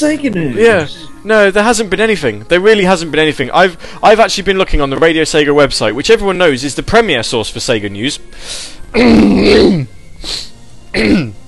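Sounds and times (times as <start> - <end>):
speech: 0.0 - 11.4
person clearing something stuck in throat: 9.0 - 9.9, 10.9 - 11.4.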